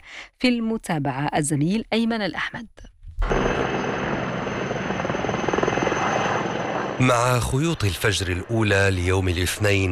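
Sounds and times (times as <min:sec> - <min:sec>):
speech: 0:00.2 - 0:03.3, 0:07.0 - 0:09.9
firefighting helicopter flying: 0:03.2 - 0:09.9.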